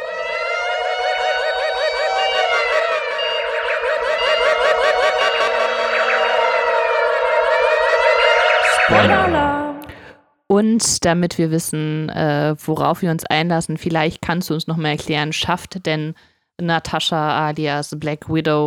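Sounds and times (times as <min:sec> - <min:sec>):
alarm siren sound effect: 0:00.0 - 0:10.1
speech: 0:08.9 - 0:09.4, 0:10.6 - 0:18.6.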